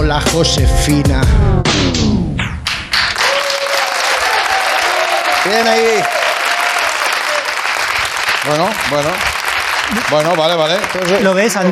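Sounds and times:
speech: 0.1 - 2.2, 5.5 - 6.2, 8.4 - 9.3, 9.9 - 11.7
audience applause: 3.0 - 11.7.

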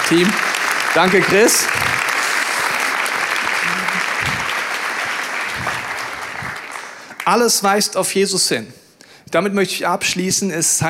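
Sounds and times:
audience applause: 0.0 - 7.4
speech: 0.1 - 2.0, 7.3 - 10.8.

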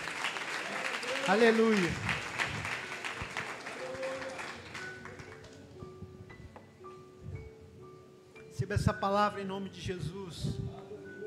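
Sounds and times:
audience applause: 0.0 - 5.6
speech: 1.3 - 2.1, 8.7 - 11.1.

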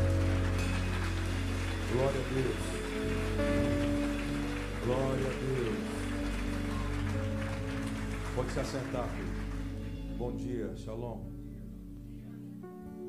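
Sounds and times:
audience applause: 0.0 - 10.2
speech: 2.0 - 3.7, 4.8 - 6.0, 8.4 - 9.4, 10.2 - 11.3.

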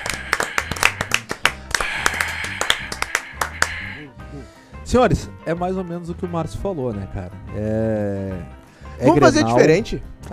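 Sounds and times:
short round of applause from a few people: 0.0 - 4.0
speech: 4.9 - 10.3.

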